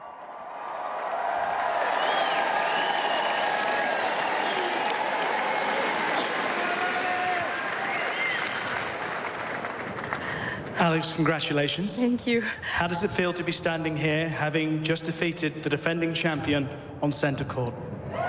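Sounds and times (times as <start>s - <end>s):
crowd whistles and cheers: 0.0s - 9.4s
large crowd applauding: 0.0s - 11.5s
speech: 10.8s - 18.2s.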